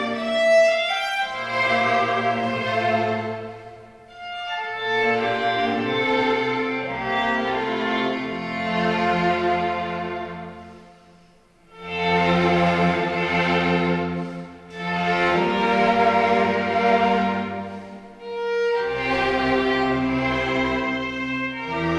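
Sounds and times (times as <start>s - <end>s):
string ensemble: 0.0s - 21.9s.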